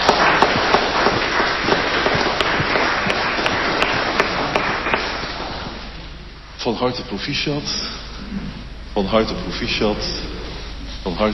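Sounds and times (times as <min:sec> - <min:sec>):
room full of people clapping: 0:00.0 - 0:06.2
speech: 0:06.6 - 0:10.3, 0:11.0 - 0:11.3.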